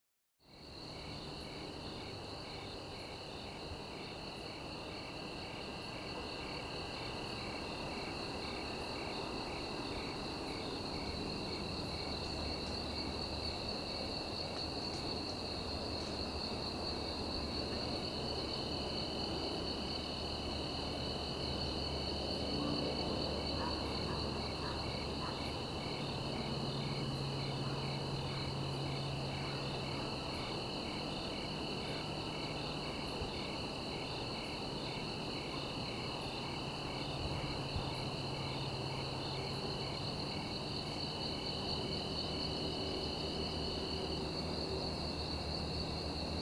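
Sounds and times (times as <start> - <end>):
crickets chirping at night: 0.4 - 46.4.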